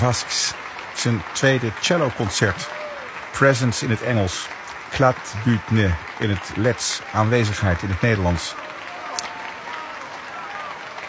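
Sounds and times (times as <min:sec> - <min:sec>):
speech: 0:00.0 - 0:08.7
applause after a cello concerto in the Plechelmus Basilica in Oldenzaal: 0:00.0 - 0:11.0
people shouting bravo after a cello concerto: 0:02.6 - 0:03.1, 0:08.5 - 0:11.0.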